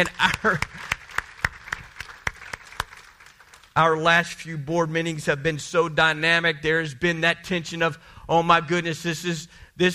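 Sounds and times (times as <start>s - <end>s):
speech: 0.0s - 1.0s, 3.8s - 9.9s
church congregation clapping in unison: 0.0s - 4.1s.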